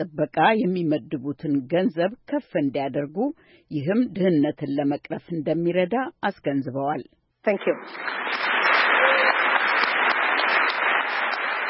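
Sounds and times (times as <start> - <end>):
speech: 0.0 - 8.5
audience of thousands applauding after Margaret Chan's speech: 7.6 - 11.6.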